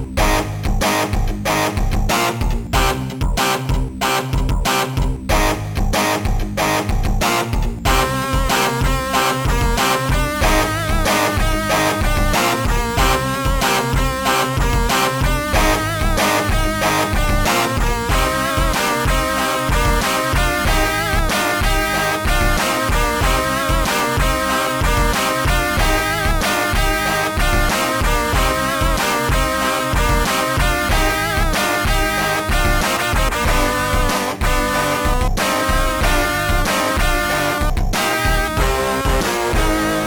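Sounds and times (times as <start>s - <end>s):
guitar melody: 0.1s - 40.0s.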